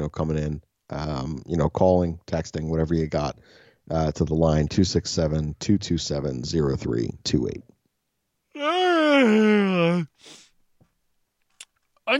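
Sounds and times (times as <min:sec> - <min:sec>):
speech: 0:00.0 - 0:07.7, 0:08.6 - 0:10.4
person yawning with a groan: 0:08.6 - 0:10.5.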